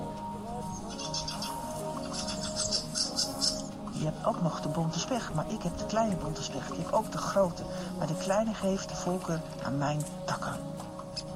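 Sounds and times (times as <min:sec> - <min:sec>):
fieldfare in tree branches giving harsh chattering calls: 0:00.8 - 0:04.0
speech: 0:04.0 - 0:10.8.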